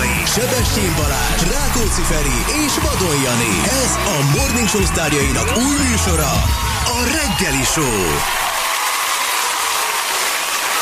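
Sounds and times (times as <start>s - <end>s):
speech: 0.4s - 8.5s
applause: 2.3s - 10.8s.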